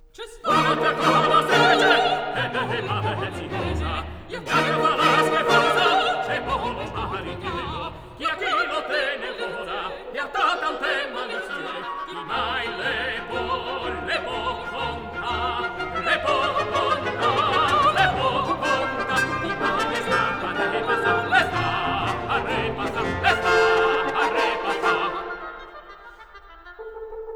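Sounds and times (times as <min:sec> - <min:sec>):
ballet with song, orchestra, allegro: 0:00.0 - 0:27.3.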